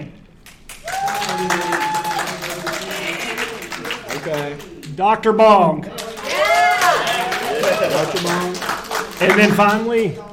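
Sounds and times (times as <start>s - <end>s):
crowd applauding: 0.6s - 4.9s, 5.9s - 10.3s
whooping cheer: 0.8s - 3.2s, 6.2s - 7.9s
speech: 4.3s - 5.9s, 7.6s - 10.3s.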